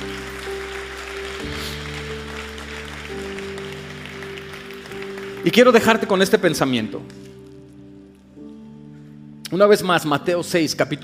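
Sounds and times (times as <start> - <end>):
audience applause: 0.0 - 6.4
sustained keyboard chords: 0.0 - 11.0
speech: 5.4 - 7.2, 9.6 - 11.0.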